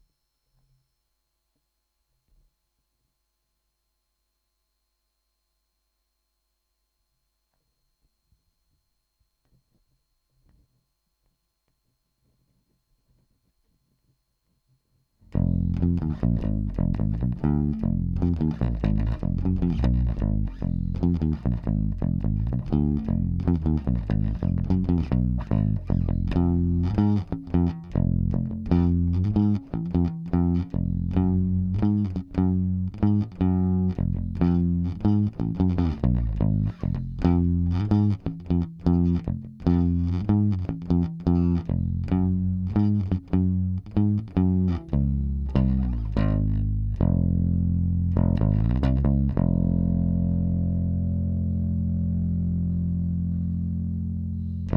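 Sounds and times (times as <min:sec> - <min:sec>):
bass: 0:15.3 - 0:54.7.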